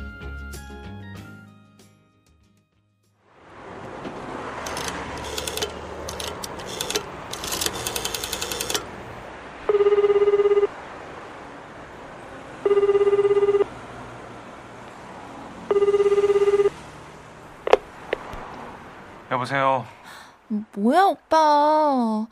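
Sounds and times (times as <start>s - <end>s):
dial tones: 4.7s - 8.9s, 9.7s - 10.8s, 12.6s - 13.7s, 15.7s - 16.8s
telephone ringing: 4.7s - 9.0s, 9.7s - 10.8s, 12.6s - 13.7s, 15.7s - 16.8s
speech: 19.5s - 22.3s.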